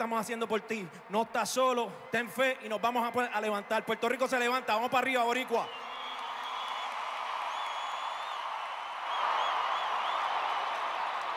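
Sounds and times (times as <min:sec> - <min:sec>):
speech: 0:00.0 - 0:05.8
audience applause: 0:05.7 - 0:11.3.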